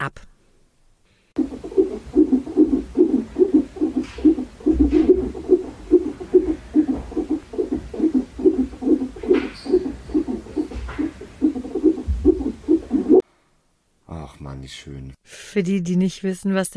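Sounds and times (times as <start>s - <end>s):
speech: 0.0s - 0.3s, 14.7s - 16.7s
unborn baby's heartbeat recording: 1.4s - 13.2s.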